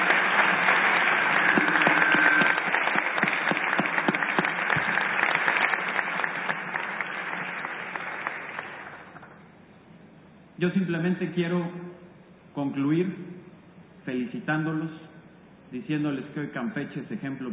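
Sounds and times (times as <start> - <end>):
crowd applauding: 0.0 - 9.4
speech: 10.6 - 11.8, 12.6 - 13.3, 14.1 - 15.0, 15.7 - 17.5.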